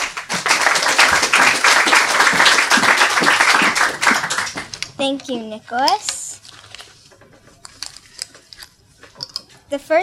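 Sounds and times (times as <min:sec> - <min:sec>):
crowd applauding: 0:00.0 - 0:04.8
speech: 0:05.0 - 0:06.2, 0:09.7 - 0:10.0.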